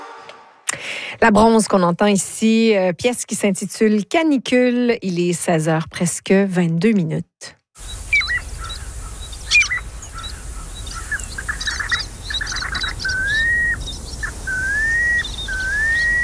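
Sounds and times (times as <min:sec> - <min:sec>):
speech: 0:01.1 - 0:07.9
light hiss: 0:07.8 - 0:16.2
piping plover calls: 0:07.9 - 0:16.2.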